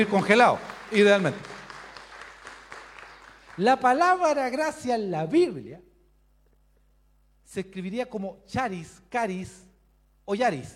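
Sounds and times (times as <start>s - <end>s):
speech: 0.0s - 1.5s, 3.6s - 5.9s, 7.5s - 9.7s, 10.3s - 10.7s
crowd applauding: 0.0s - 4.1s.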